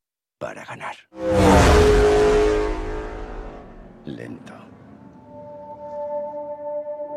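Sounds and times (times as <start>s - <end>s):
Ferrari engine revving in a film trailer about Enzo Ferrari: 1.2s - 5.7s
speech: 4.1s - 4.8s.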